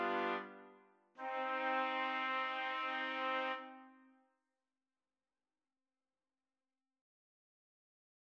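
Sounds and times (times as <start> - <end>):
trumpets playing: 0.0 - 4.0.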